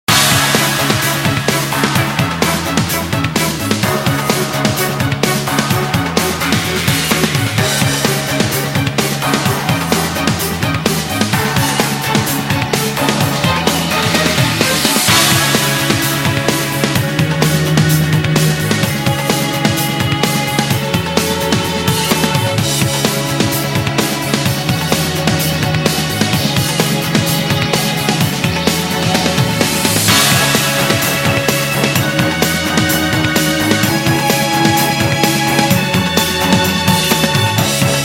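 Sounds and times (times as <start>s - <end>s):
string build: 0.1s - 38.0s.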